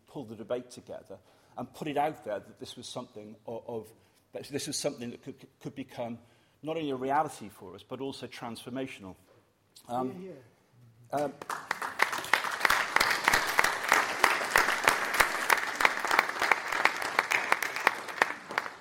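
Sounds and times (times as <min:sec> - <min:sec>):
speech: 0:00.2 - 0:10.5, 0:11.1 - 0:11.6
burst of applause: 0:11.2 - 0:18.7.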